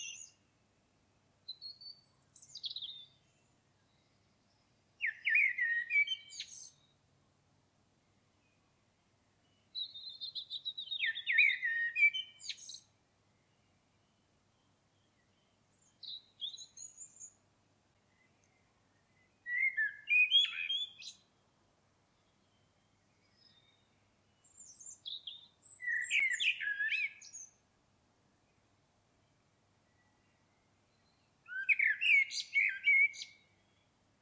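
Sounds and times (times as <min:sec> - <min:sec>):
common blackbird singing: 0:00.0 - 0:00.4, 0:01.5 - 0:07.0, 0:09.5 - 0:12.9, 0:13.6 - 0:17.4, 0:18.1 - 0:21.4, 0:22.2 - 0:27.6, 0:29.9 - 0:33.9.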